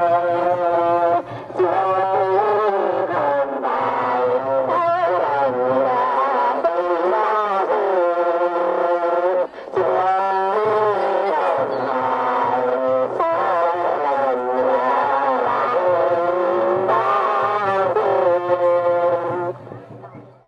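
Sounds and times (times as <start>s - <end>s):
distorted singing at festival near Bac Ninh in Vietnam: 0.0s - 20.4s.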